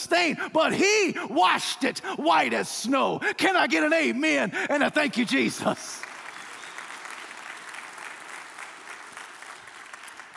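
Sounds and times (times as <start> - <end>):
speech: 0.0 - 6.1
audience applause: 5.9 - 10.3.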